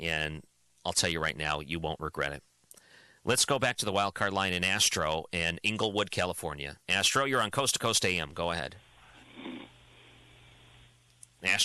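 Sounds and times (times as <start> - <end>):
speech: 0.0 - 2.5, 3.2 - 8.8, 11.4 - 11.6
person snoring: 9.1 - 9.7.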